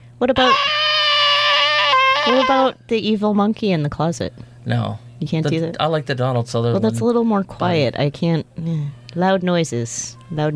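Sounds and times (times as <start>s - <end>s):
speech: 0.2s - 0.8s, 2.3s - 10.5s
person imitating alien pod-person scream: 0.4s - 2.7s.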